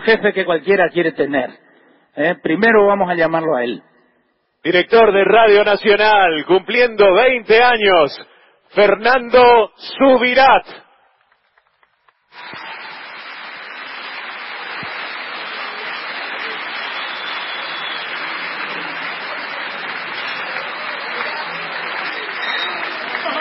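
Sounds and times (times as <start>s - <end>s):
speech: 0.0s - 3.9s, 4.6s - 10.8s
audience applause: 11.5s - 23.3s.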